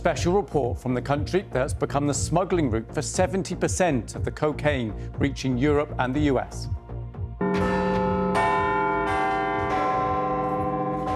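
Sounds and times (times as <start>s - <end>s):
speech: 0.0s - 6.8s
deep clock tower bell chiming: 7.4s - 11.1s.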